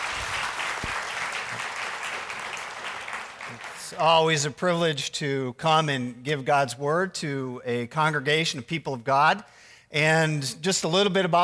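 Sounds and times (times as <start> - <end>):
congregation at a church service applauding to welcome a guest speaker: 0.0 - 4.4
speech: 3.9 - 11.4.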